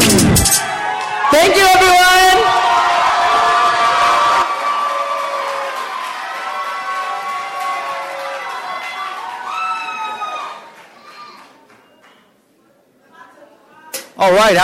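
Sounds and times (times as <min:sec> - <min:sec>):
audience cheering: 0:00.2 - 0:11.7
audience applause: 0:02.2 - 0:11.7
speech: 0:14.2 - 0:14.6.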